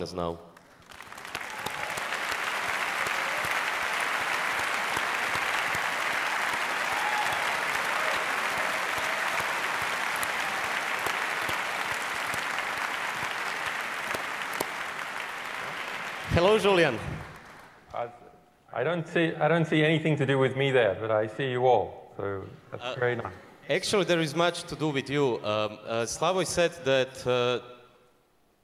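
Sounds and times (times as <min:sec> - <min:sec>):
speech: 0:00.0 - 0:00.5, 0:16.4 - 0:17.1, 0:18.8 - 0:27.7
audience applause from a large crowd: 0:00.8 - 0:17.8.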